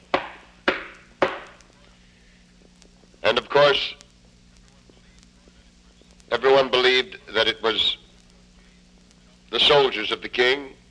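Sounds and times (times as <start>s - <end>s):
knocking at a door: 0.1s - 1.5s
speech: 3.3s - 4.0s, 6.3s - 8.0s, 9.5s - 10.8s.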